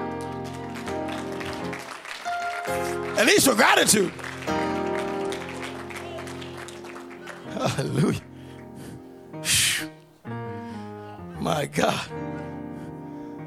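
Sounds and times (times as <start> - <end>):
audience clapping: 0.0 - 8.8
speech: 2.7 - 4.6, 7.7 - 8.3, 11.5 - 12.4.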